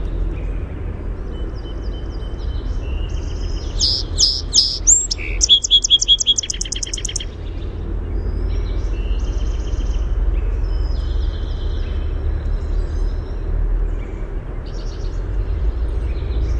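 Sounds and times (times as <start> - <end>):
song sparrow song with rattling trill: 0.0 - 16.5.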